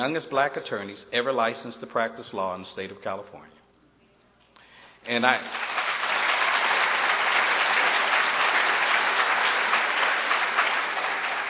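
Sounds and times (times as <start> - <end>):
speech: 0.0 - 3.6, 5.0 - 5.8
audience clapping: 5.1 - 11.4.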